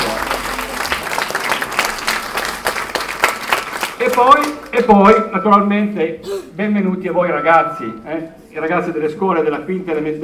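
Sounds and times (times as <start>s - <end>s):
applause: 0.0s - 5.0s
speech: 4.1s - 10.2s.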